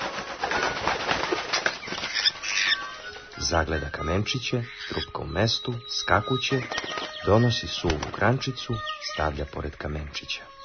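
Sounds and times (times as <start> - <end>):
magpie's wings flapping as it lands on a red surface: 0.0 - 3.4, 6.5 - 8.6
speech: 3.5 - 10.6.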